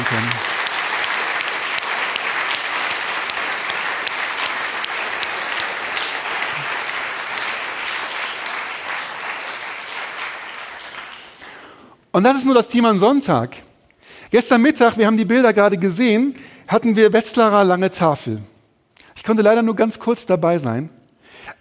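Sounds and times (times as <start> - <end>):
audience applause for the team: 0.0 - 11.8
speech: 12.2 - 13.7, 14.3 - 18.5, 19.2 - 21.5.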